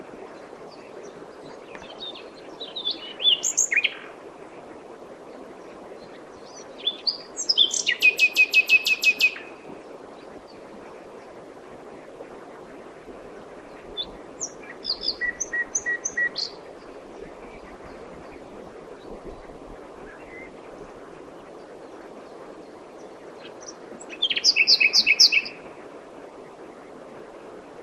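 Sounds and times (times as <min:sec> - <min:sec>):
common nightingale song: 0:01.0 - 0:04.2, 0:06.1 - 0:09.6, 0:14.0 - 0:16.9, 0:23.0 - 0:25.6.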